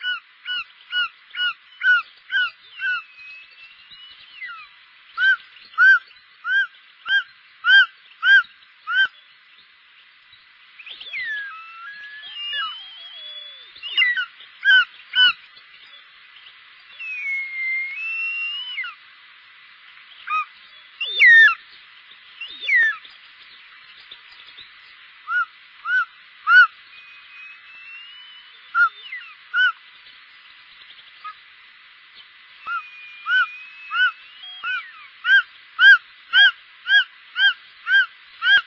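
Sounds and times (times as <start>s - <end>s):
short-toed snake eagle calling: 0.0s - 3.6s, 4.2s - 9.2s, 10.8s - 15.4s, 16.9s - 19.0s, 20.2s - 21.6s, 22.4s - 23.0s, 25.3s - 29.8s, 32.6s - 38.6s
faint hiss: 0.0s - 38.6s.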